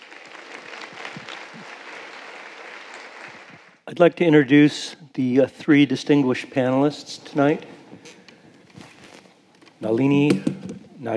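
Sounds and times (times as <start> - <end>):
audience applause welcoming a speaker at an evening panel event: 0.0 - 3.8
speech: 3.9 - 7.7, 9.8 - 11.1.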